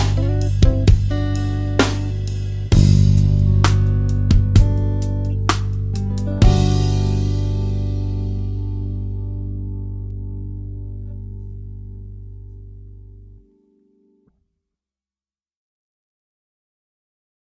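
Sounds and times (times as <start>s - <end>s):
song played in whole notes at 65 BPM: 0.0s - 12.8s.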